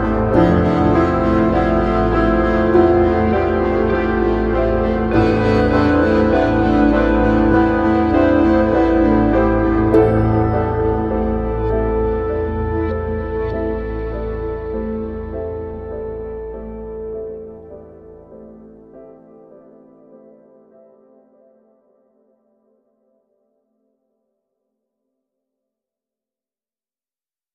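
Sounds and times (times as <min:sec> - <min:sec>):
guitar without EBow: 0:00.0 - 0:18.6.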